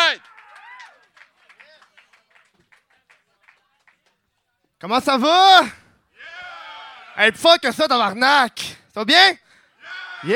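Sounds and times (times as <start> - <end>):
audience applause: 0.0 - 4.0
speech: 4.8 - 5.8, 7.2 - 9.4.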